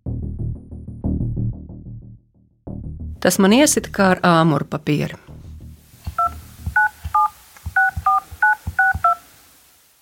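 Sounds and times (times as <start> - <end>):
speech: 3.2 - 5.2
telephone keypad dialing beeps: 6.1 - 9.2.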